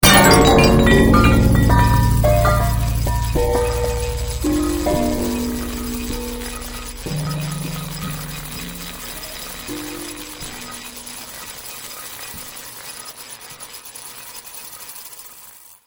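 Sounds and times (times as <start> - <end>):
long looped music mix: 0.0 - 11.4.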